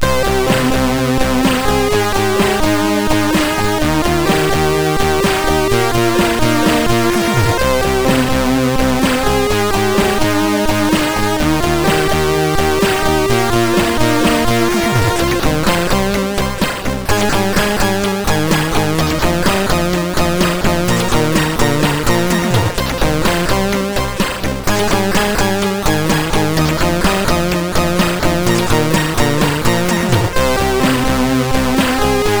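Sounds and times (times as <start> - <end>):
MOS6581R4 SID chip music: 0.0 - 32.3.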